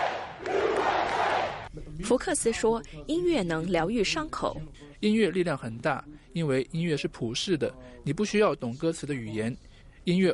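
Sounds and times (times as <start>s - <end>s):
audience chanting: 0.0s - 1.7s
speech: 2.0s - 10.3s.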